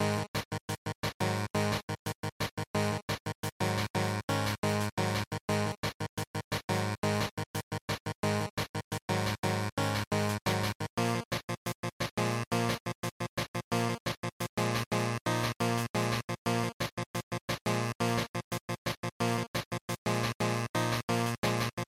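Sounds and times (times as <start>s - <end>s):
fighting game title music loop: 0.0s - 21.9s.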